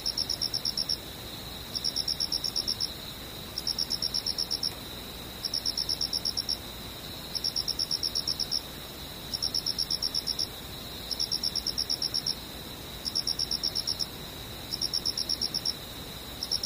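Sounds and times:
cricket chirping: 0.0s - 16.6s
thin steady whine: 0.0s - 16.6s.

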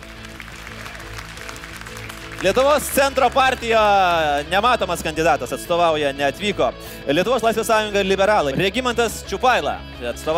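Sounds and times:
audience applause at a game event: 0.0s - 4.2s
speech: 2.4s - 10.3s.

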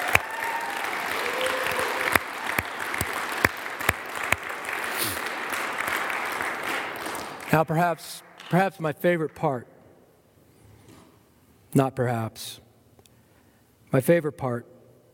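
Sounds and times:
audience applause: 0.0s - 7.8s
speech: 7.6s - 9.7s, 11.7s - 12.6s, 13.9s - 14.8s.

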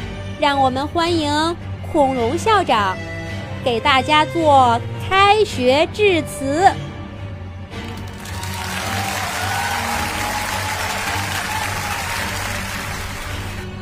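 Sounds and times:
speech: 0.4s - 6.9s
applause: 7.8s - 13.8s.

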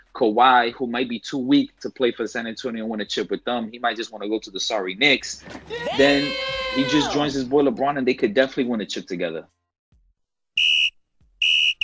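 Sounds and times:
speech: 0.2s - 9.6s
whistle: 10.6s - 11.8s.

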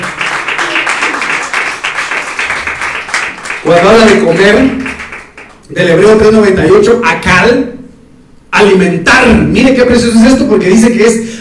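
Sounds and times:
audience clapping: 0.0s - 5.7s
speech: 3.7s - 4.9s, 5.7s - 7.8s, 8.6s - 11.3s.

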